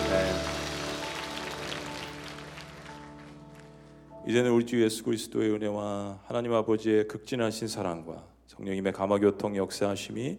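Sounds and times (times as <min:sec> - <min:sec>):
audience applause: 0:00.0 - 0:03.9
speech: 0:04.2 - 0:10.3.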